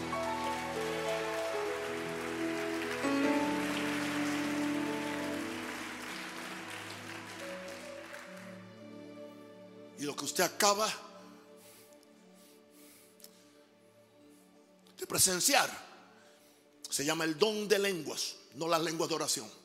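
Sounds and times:
audience applause: 0.0s - 8.9s
sustained keyboard chords: 0.0s - 10.0s
speech: 10.0s - 11.0s, 15.2s - 15.9s, 17.0s - 19.6s.

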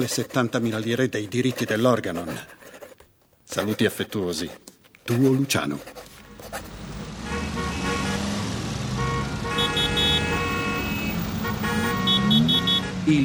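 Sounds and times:
speech: 0.0s - 2.6s, 3.5s - 6.7s, 13.1s - 13.2s
road traffic: 3.8s - 13.2s
car horns honking: 6.8s - 13.1s.

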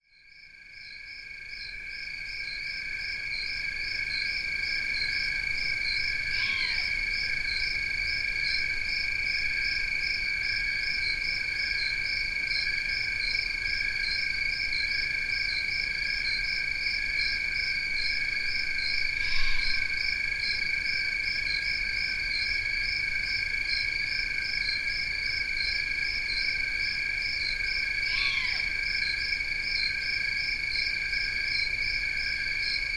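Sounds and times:
crickets trilling: 0.3s - 32.9s
young owl downslurred begging call: 6.4s - 6.9s, 19.2s - 19.8s, 28.1s - 28.7s.

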